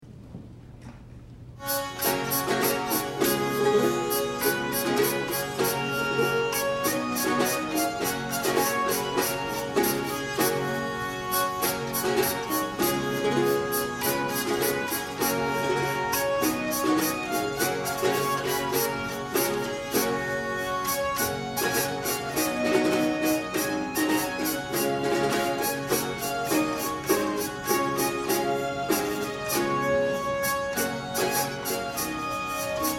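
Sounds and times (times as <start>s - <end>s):
musette music: 1.6s - 32.9s.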